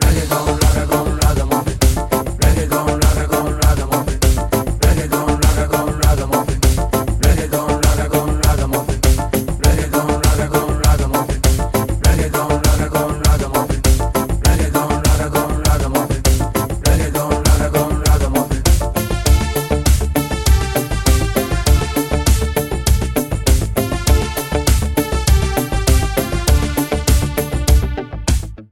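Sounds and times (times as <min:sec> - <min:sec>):
reggae ragga music: 0:00.0 - 0:28.7.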